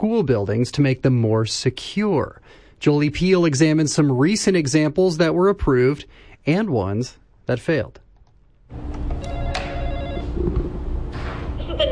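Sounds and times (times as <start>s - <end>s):
speech: 0.0s - 8.0s, 8.7s - 9.0s
school door intercom buzzer ringing: 9.1s - 10.5s.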